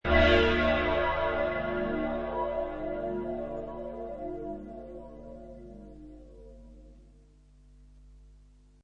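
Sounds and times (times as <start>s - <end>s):
processed church bell, sci-fi space church: 0.1s - 6.8s.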